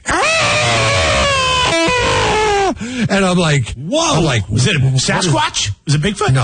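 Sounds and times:
hawk with wing caught in barbed wire screaming: 0.0s - 2.8s
speech: 3.1s - 6.4s.

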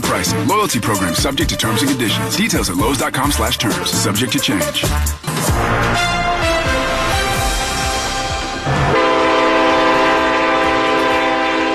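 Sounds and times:
speech: 0.1s - 6.0s
passing train rumbling and clattering near St. Louis rail lines: 5.5s - 11.7s.

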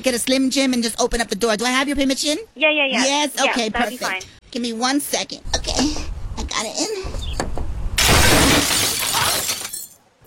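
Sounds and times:
speech: 0.0s - 6.0s, 6.6s - 7.2s
car window glass breaking: 8.0s - 10.0s.

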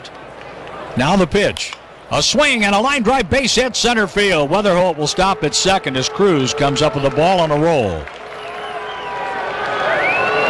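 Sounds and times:
speech: 1.0s - 8.2s
baseball fans booing the home team's relief pitcher at a ballpark: 4.2s - 10.4s.

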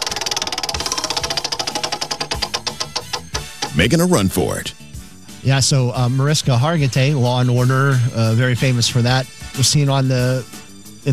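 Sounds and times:
spinning prize wheel pointer clicking on pegs: 0.0s - 4.6s
speech: 3.8s - 4.8s, 5.4s - 11.1s.

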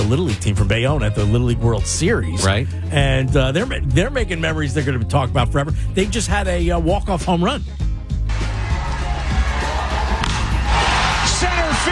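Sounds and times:
speech: 0.1s - 7.8s
crowd applause: 8.3s - 11.8s.

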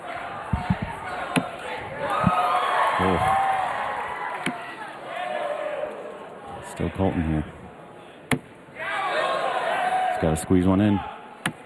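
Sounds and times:
crowd cheering at darts match: 0.0s - 7.1s, 8.8s - 11.6s
dull thuds: 0.5s - 1.5s
speech: 7.0s - 7.6s, 10.2s - 11.1s.

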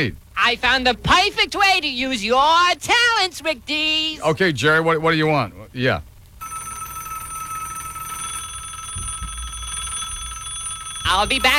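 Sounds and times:
speech: 0.0s - 6.1s, 11.1s - 11.5s
low hum: 0.0s - 11.5s
telephone ringing: 6.4s - 11.5s.

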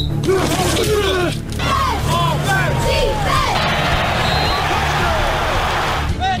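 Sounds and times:
people shouting: 0.2s - 6.2s
football game crowd roaring and cheering: 1.5s - 6.3s.

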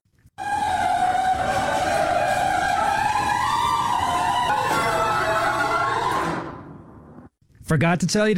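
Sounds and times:
old garage door grinding open with metallic screech: 0.4s - 7.0s
speech: 7.7s - 8.3s.

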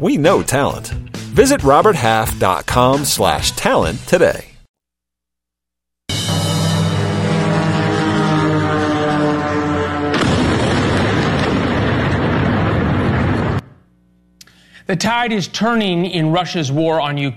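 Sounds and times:
speech: 0.0s - 4.5s, 14.9s - 17.3s
loud steady droning hum with layered tones: 6.5s - 10.6s, 13.6s - 14.4s
drone strike explosions: 7.1s - 13.8s.

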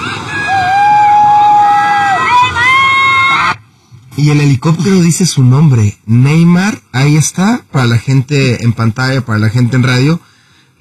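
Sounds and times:
crowd cheering at arrival: 0.0s - 3.6s
speech: 4.2s - 10.8s.

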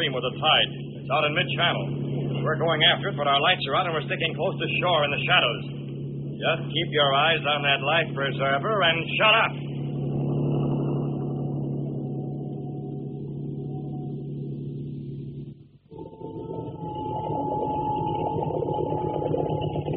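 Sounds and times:
speech: 0.0s - 5.8s, 6.4s - 9.6s
motorboat engine droning at low throttle on river: 0.0s - 19.9s.

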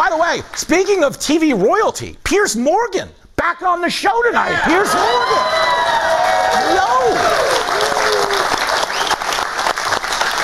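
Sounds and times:
speech: 0.2s - 8.6s
person whooping: 4.5s - 8.6s
audience applause: 4.9s - 10.4s.

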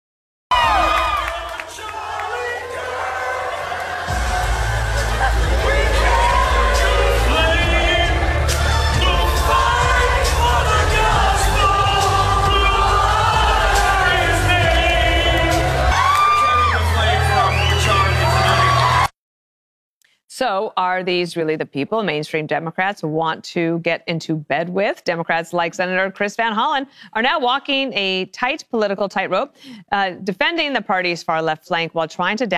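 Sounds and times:
packed crowd cheering, whooping and shouting at an event: 0.5s - 19.1s
speech: 20.4s - 32.5s.

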